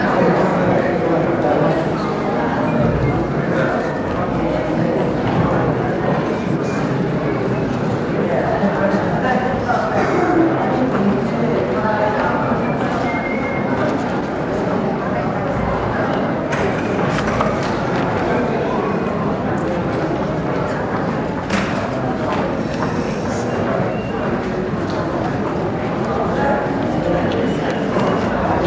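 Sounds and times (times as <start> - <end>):
spectators arriving: 0.0 - 28.6.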